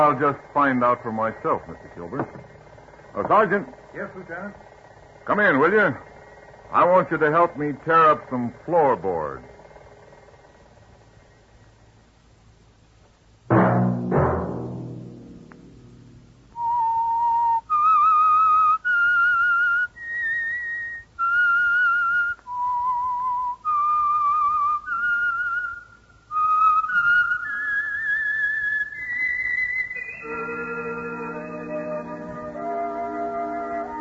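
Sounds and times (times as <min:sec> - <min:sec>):
speech: 0:00.0 - 0:02.5, 0:03.1 - 0:04.7, 0:05.3 - 0:06.1, 0:06.7 - 0:09.5
musical chord: 0:13.5 - 0:16.6, 0:29.9 - 0:33.9
whistled tune: 0:16.5 - 0:33.9.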